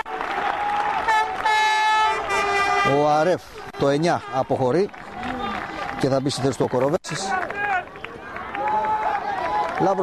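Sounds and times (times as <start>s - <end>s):
applause: 0.0s - 2.6s, 4.5s - 10.0s
speech: 2.9s - 5.4s, 6.0s - 7.6s, 9.8s - 10.0s.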